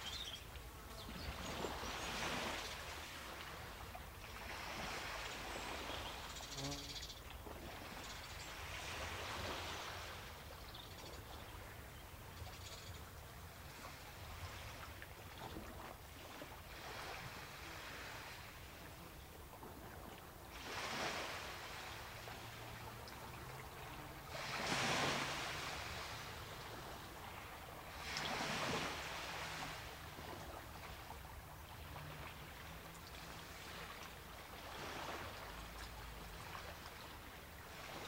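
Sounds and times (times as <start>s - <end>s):
sea soundscape: 0.0s - 38.0s.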